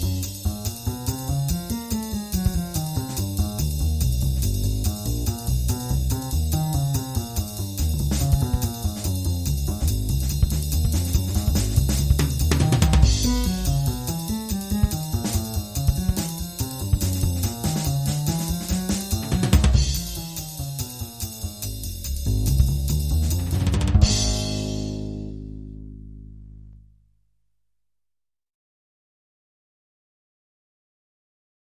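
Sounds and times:
jazz drum kit loop: 0.0 - 25.2.

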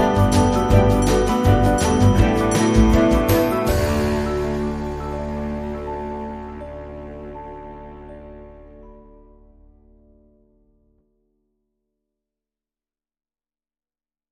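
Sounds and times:
music mix without acoustic guitars: 0.0 - 10.7.

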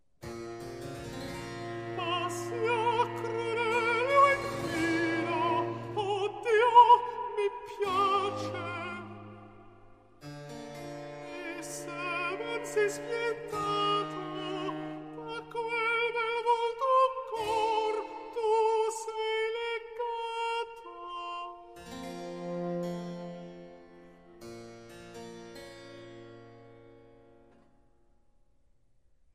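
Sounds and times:
cantata for alto solo: 1.6 - 9.5, 11.2 - 24.4.

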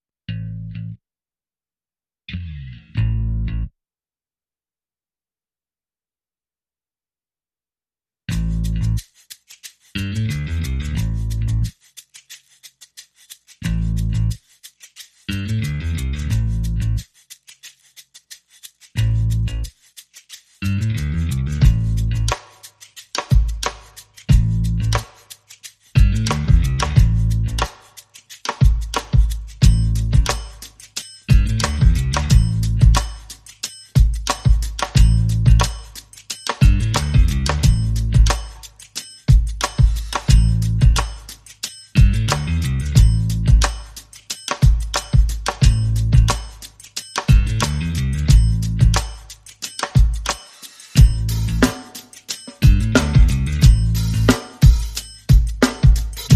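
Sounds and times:
bass: 0.3 - 1.0, 2.3 - 3.7, 8.3 - 9.2, 9.9 - 11.8, 13.6 - 14.5, 15.3 - 17.1, 18.9 - 19.8, 20.6 - 22.5, 23.2 - 25.3, 25.9 - 27.9, 28.6 - 51.9, 52.6 - 56.3
drums: 21.5 - 25.3, 26.0 - 27.8, 28.5 - 56.3.

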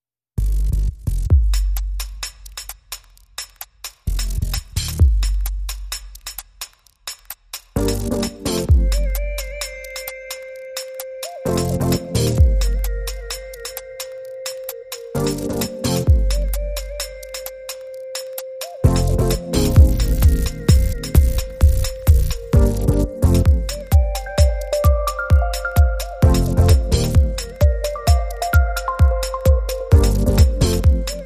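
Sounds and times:
techno beat: 0.4 - 31.2.

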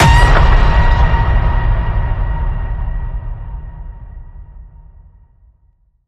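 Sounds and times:
loud ping: 0.0 - 3.6.

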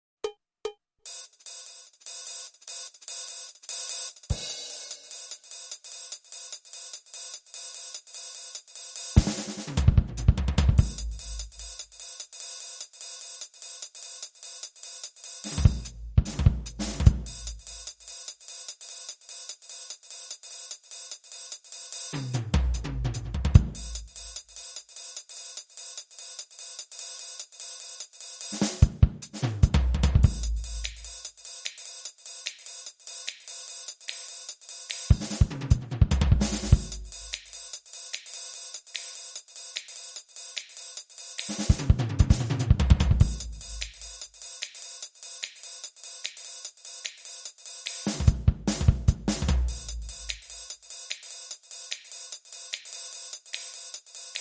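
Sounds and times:
bebop jazz loop: 9.2 - 12.2, 15.4 - 18.3, 22.1 - 24.6, 28.6 - 31.9, 33.3 - 45.6, 46.2 - 54.3.

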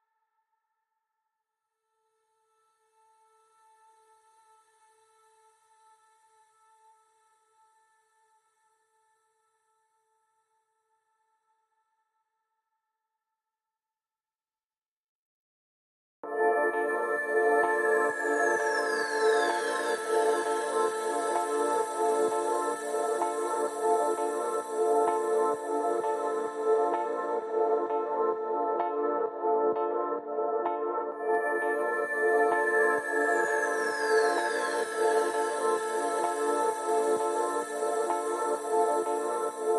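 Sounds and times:
ambient music: 16.3 - 39.7.

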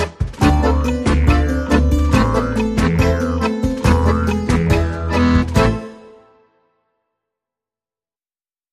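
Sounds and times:
tango music: 0.0 - 6.4.

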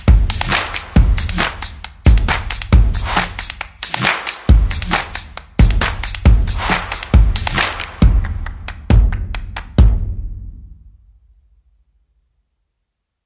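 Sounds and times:
percussion: 0.0 - 11.4.

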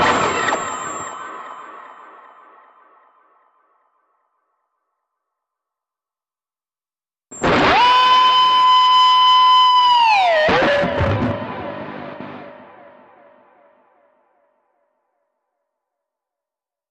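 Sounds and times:
screaming guitar: 7.4 - 13.2.

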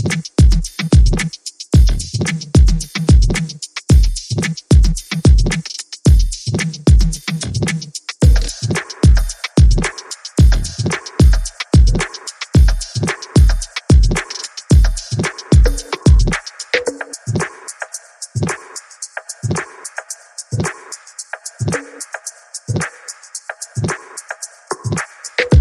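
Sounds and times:
reduced percussion: 0.0 - 25.5.

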